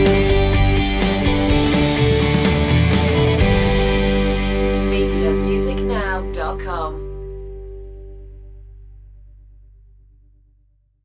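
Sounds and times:
countryside underscore music: 0:00.0 - 0:07.8.

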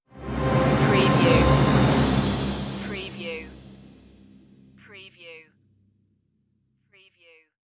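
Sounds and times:
orchestral stinger: 0:00.1 - 0:04.8.

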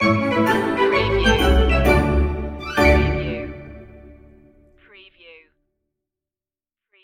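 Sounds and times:
happy playground music stinger: 0:00.0 - 0:04.6.

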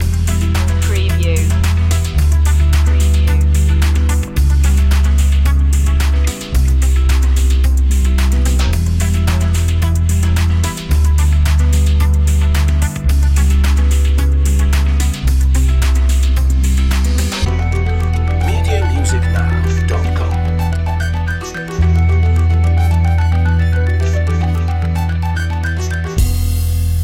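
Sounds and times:
positive guitar background music: 0:00.0 - 0:26.9.

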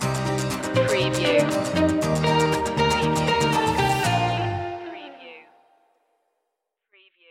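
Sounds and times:
music stinger: 0:00.0 - 0:05.0.

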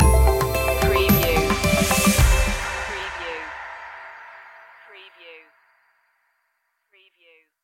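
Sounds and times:
music stinger: 0:00.0 - 0:04.8.

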